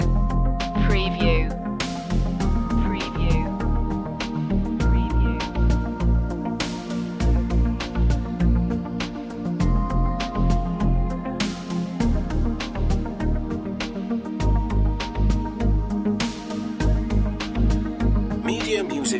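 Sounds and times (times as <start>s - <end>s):
advertising music loop: 0.0s - 19.1s.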